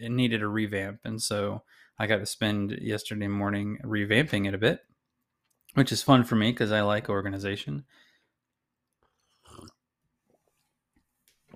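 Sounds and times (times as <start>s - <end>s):
speech: 0.0s - 4.9s, 5.7s - 8.0s
person sipping coffee: 9.0s - 9.9s.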